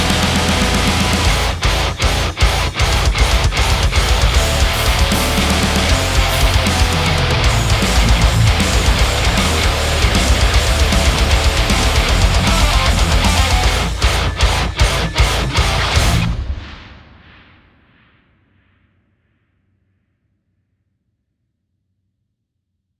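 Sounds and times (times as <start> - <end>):
high-gain ToneX amp tone: 0.0 - 16.6.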